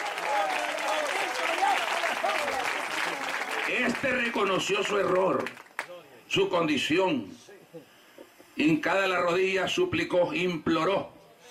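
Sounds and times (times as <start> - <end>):
audience applauding: 0.0 - 6.0
speech: 3.9 - 5.6, 6.3 - 7.9, 8.6 - 11.2.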